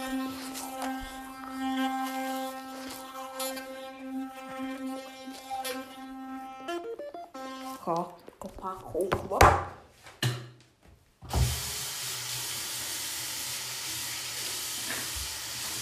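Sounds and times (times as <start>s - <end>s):
brushing teeth: 0.0s - 9.0s, 11.8s - 15.8s
speech: 7.9s - 9.8s.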